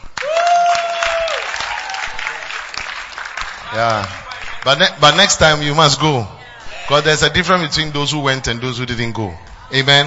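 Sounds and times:
audience clapping: 0.0s - 5.7s
speech: 3.7s - 10.0s.

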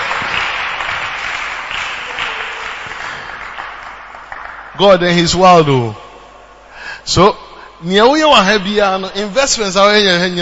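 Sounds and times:
audience clapping: 0.0s - 4.8s
speech: 4.8s - 6.0s, 7.1s - 10.4s.

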